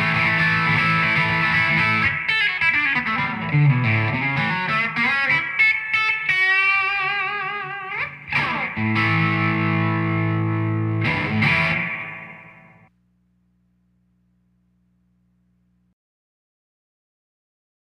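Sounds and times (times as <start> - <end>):
modern country Telecaster electric guitar on bridge pickup with light grind: 0.0 - 12.9.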